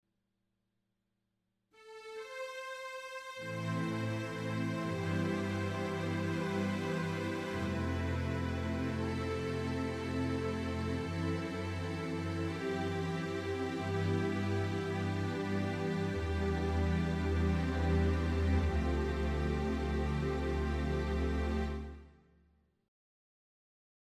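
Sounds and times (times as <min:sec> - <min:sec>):
Triton Taktile legato strings: 0:03.4 - 0:22.0.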